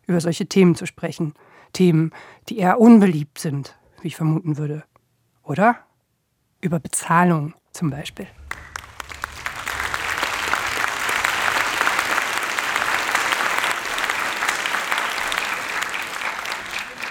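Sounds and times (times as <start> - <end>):
speech: 0.1 - 4.9, 5.5 - 5.9, 6.6 - 8.4
audience clapping: 8.2 - 17.0.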